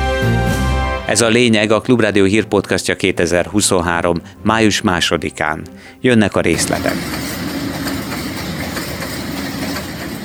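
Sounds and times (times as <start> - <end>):
speech: 1.1 - 7.4
train rumbling along railway tracks: 6.5 - 10.2.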